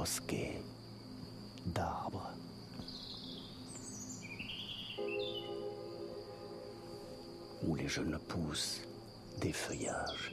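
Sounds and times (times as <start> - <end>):
speech: 0.0 - 0.8, 1.6 - 2.9, 7.6 - 10.3
birds singing among trees: 0.0 - 10.3
hum of insects: 0.0 - 10.3.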